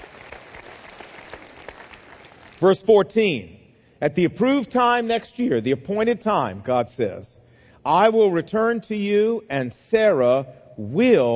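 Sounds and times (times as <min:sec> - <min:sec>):
audience applause: 0:00.0 - 0:02.6
speech: 0:02.6 - 0:11.3.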